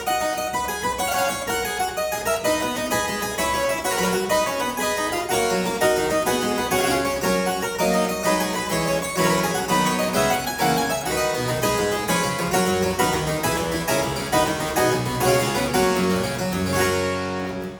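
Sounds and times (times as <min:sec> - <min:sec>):
harpsichord playing a gigue in C major: 0:00.1 - 0:17.7.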